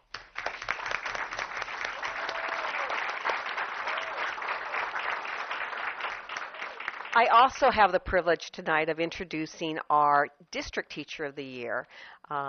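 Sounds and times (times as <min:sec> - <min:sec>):
audience applause: 0:00.0 - 0:07.5
speech: 0:07.2 - 0:12.4.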